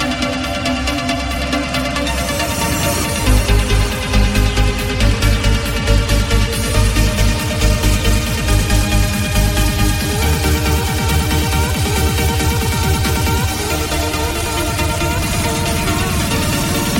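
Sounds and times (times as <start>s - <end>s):
trance ringtone: 0.2s - 16.9s.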